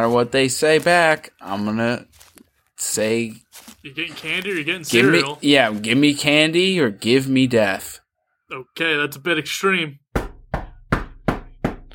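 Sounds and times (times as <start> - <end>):
speech: 0.0 - 2.2, 2.8 - 10.0
knocking on a door: 10.1 - 11.9.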